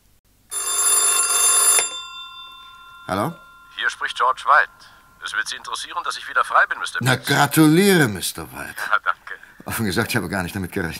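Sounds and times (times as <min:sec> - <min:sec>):
telephone ringing in a single electronic trill: 0:00.5 - 0:07.7
speech: 0:03.1 - 0:10.9.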